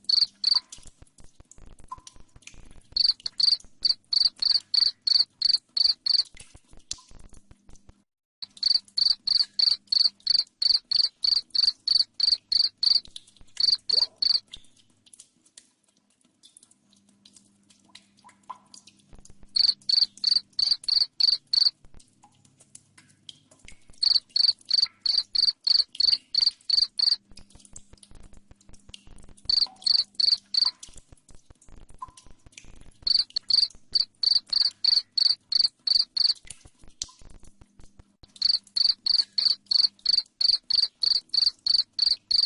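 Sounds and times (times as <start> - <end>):
cricket chirping: 0.0 - 0.6, 3.0 - 6.2, 8.4 - 13.0, 13.6 - 14.4, 19.6 - 21.7, 24.0 - 27.2, 29.5 - 30.7, 33.1 - 36.4, 38.2 - 42.4
faint clicks: 0.0 - 42.4.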